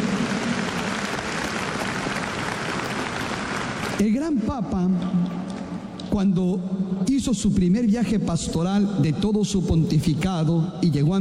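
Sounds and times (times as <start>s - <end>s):
audience applause: 0.0s - 4.0s
speech: 4.0s - 5.4s, 6.1s - 11.1s.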